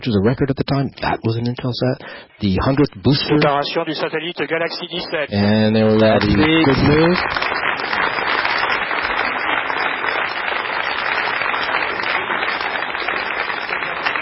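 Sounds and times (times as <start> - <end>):
speech: 0.0 - 7.7
people applauding after both satellites successfully separated: 5.7 - 14.2.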